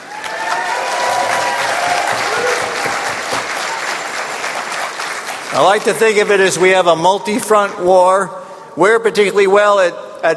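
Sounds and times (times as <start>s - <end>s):
audience applause: 0.0s - 6.4s
speech: 5.5s - 10.3s.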